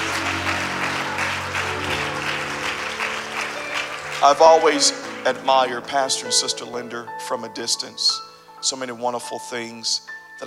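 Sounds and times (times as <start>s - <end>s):
audience clapping hands: 0.0s - 6.7s
speech: 4.2s - 10.4s.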